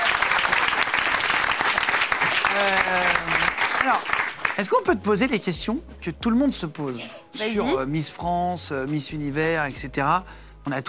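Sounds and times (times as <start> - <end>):
audience applause: 0.0 - 4.6
speech: 2.6 - 3.1, 3.8 - 10.8.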